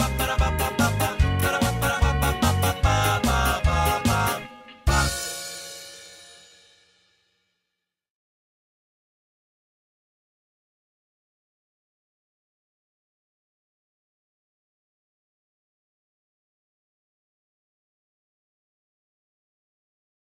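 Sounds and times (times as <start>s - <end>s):
instrumental backing track: 0.0s - 6.8s.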